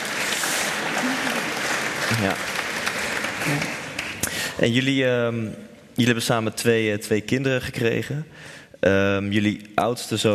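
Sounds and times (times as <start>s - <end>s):
crowd applause: 0.0s - 4.6s
speech: 2.1s - 2.5s, 3.4s - 3.8s, 4.6s - 10.3s.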